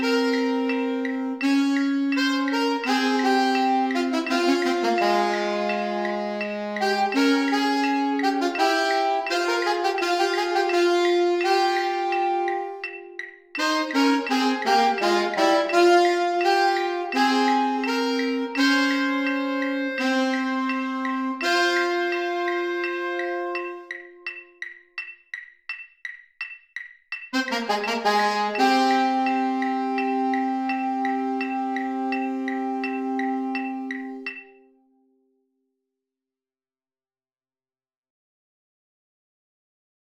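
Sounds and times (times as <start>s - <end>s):
alto saxophones in a marching band: 0.0s - 24.6s, 27.3s - 34.8s
marching band playing: 1.4s - 13.0s, 13.6s - 24.0s, 27.3s - 34.4s.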